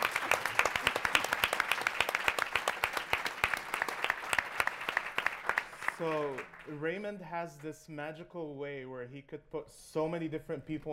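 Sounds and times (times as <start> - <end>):
crowd applause: 0.0 - 6.8
speech: 6.0 - 10.9.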